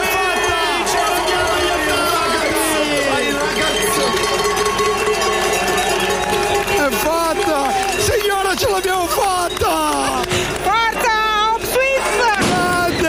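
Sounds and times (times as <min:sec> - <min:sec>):
crowd chanting in a stadium: 0:00.0 - 0:06.8
huge stadium crowd roaring after the final whistle: 0:00.0 - 0:13.0.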